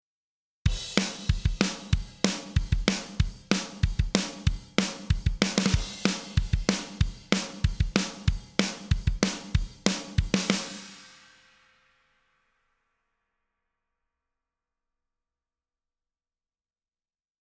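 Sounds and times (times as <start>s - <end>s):
drum: 0.7s - 11.4s.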